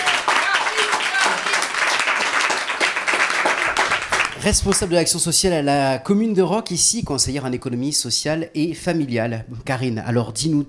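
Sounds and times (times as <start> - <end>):
audience applause: 0.0 - 4.9
speech: 4.4 - 10.6.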